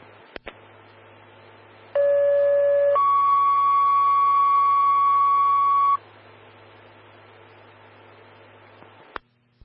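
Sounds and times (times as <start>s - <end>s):
fire dispatch alert tones: 2.0s - 6.0s.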